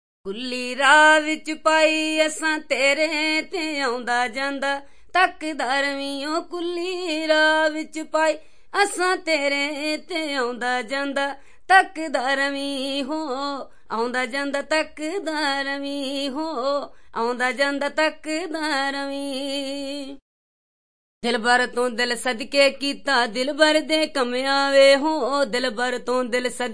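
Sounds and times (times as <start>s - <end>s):
Indian singing: 0.3s - 20.2s, 21.2s - 26.7s.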